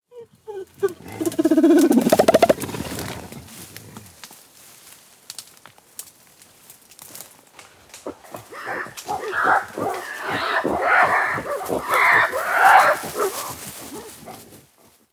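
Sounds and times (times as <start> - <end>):
jungle primates calling: 0.5 - 3.0, 8.1 - 14.1.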